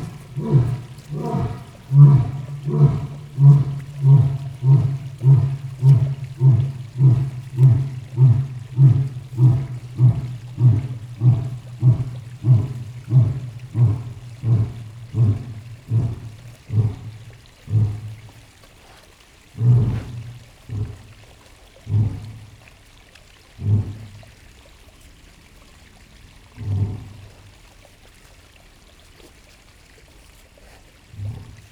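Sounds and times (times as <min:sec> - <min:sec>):
lion roaring in a zoo: 0:00.0 - 0:18.4, 0:19.6 - 0:21.3, 0:21.9 - 0:22.5, 0:23.6 - 0:24.2, 0:26.6 - 0:27.4, 0:31.1 - 0:31.6
stream in a zoo: 0:00.0 - 0:31.6.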